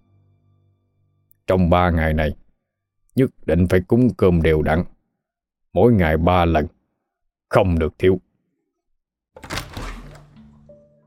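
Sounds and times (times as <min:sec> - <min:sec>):
speech: 0:01.5 - 0:02.4, 0:03.2 - 0:04.9, 0:05.8 - 0:06.8, 0:07.5 - 0:08.3
room door shutting tight: 0:09.4 - 0:10.6.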